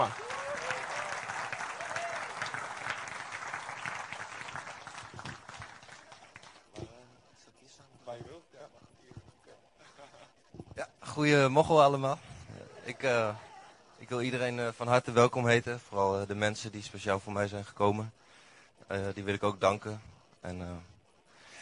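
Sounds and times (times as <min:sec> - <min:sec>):
audience applause: 0:00.0 - 0:06.7
speech: 0:11.2 - 0:12.3, 0:12.9 - 0:13.5, 0:14.1 - 0:18.2, 0:18.9 - 0:20.9.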